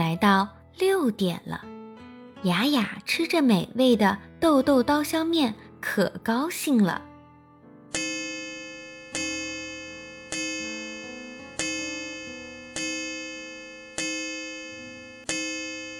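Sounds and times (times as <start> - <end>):
speech: 0.2 - 1.8, 2.4 - 7.1
clock striking the hour: 7.9 - 15.9.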